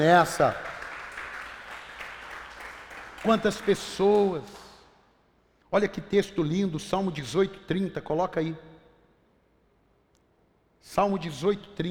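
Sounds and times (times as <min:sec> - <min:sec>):
speech: 0:00.0 - 0:00.6, 0:03.2 - 0:04.6, 0:05.7 - 0:08.7, 0:10.8 - 0:11.8
crowd applause: 0:00.0 - 0:04.7.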